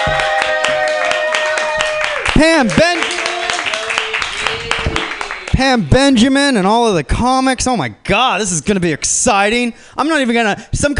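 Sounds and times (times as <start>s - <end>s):
comedy club audience clapping: 0.0s - 5.9s
speech: 2.4s - 3.2s, 5.6s - 10.9s.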